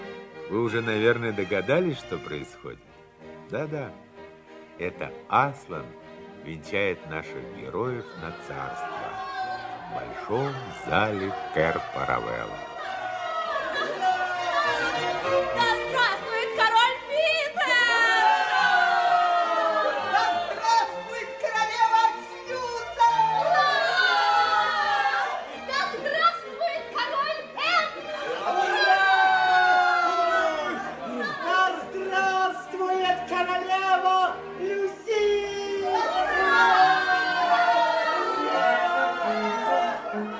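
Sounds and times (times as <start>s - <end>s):
speech: 0.5s - 2.9s, 3.5s - 4.1s, 4.8s - 9.0s, 9.9s - 12.7s
large crowd cheering joyfully in a great hall: 8.0s - 40.3s.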